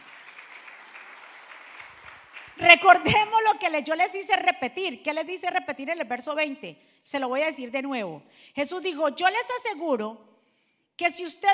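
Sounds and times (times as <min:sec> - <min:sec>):
crowd applause: 0:00.0 - 0:02.6
speech: 0:02.6 - 0:10.3, 0:11.0 - 0:11.5.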